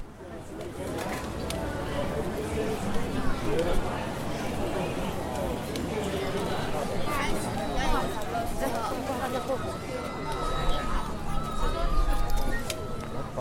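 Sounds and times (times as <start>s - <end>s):
busy night market crowd chatter: 0.0s - 13.3s.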